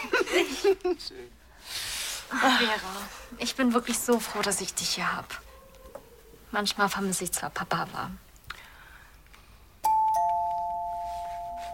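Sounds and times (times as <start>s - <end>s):
speech: 0.6s - 5.5s, 6.5s - 8.2s
two-tone doorbell chime: 9.8s - 11.7s.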